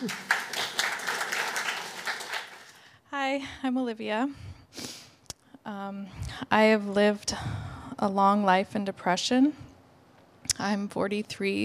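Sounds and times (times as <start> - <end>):
speech: 0.0 - 0.3, 3.3 - 4.9, 5.7 - 9.7, 10.6 - 11.6
audience applause: 0.0 - 2.8.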